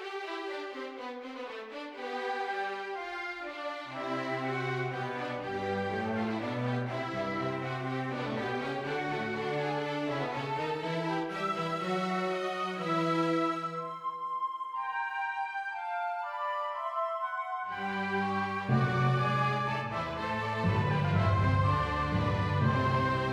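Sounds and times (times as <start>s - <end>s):
orchestral music: 0.2s - 23.3s.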